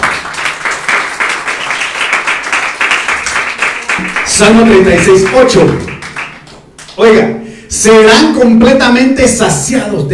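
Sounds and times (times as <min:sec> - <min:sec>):
audience clapping hands: 0:00.0 - 0:07.2
speech: 0:04.4 - 0:06.0, 0:07.0 - 0:10.1.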